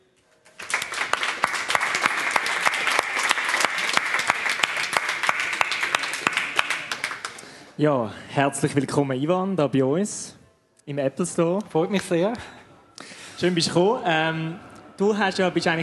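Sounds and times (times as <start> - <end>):
audience applause: 0.5 - 7.4
speech: 7.8 - 12.6, 13.4 - 15.8.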